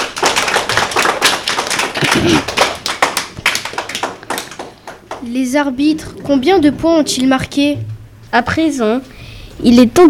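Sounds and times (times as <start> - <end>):
audience applause: 0.0 - 5.2
speech: 2.1 - 2.6, 5.2 - 10.0.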